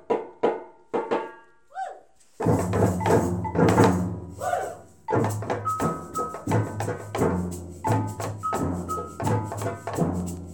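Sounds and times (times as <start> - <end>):
samba music: 2.4 - 10.5.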